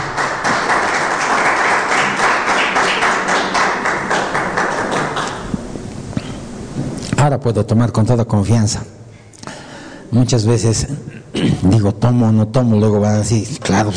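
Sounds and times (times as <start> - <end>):
audience applause in a rhythmic pulse: 0.0 - 5.5
speech: 7.3 - 9.0, 10.1 - 13.9.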